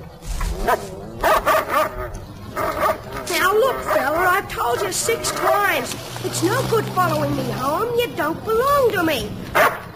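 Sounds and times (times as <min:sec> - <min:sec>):
speech: 0:00.6 - 0:01.4, 0:03.5 - 0:09.8
dog barking and yipping: 0:00.6 - 0:03.1, 0:09.5 - 0:09.9.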